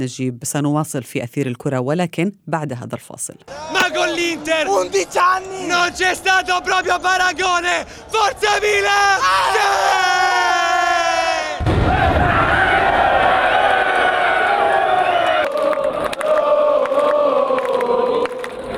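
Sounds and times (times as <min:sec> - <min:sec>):
speech: 0:00.0 - 0:10.6
football supporters roaring and cheering: 0:08.5 - 0:18.7
football supporters chanting: 0:12.8 - 0:18.7.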